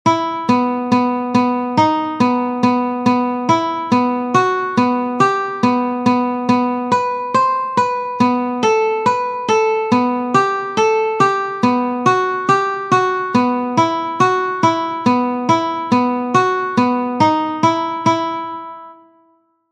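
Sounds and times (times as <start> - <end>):
classical etude: 0.2 - 18.9.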